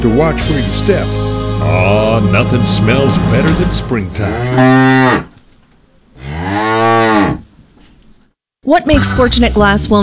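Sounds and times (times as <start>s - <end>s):
speech: 0.0s - 5.3s, 8.7s - 10.0s
cow mooing: 1.6s - 5.4s, 6.2s - 7.5s.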